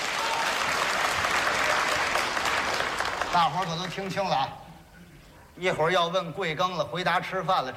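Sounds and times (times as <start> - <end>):
audience applause: 0.0 - 4.1
speech: 3.3 - 4.6, 5.6 - 7.7.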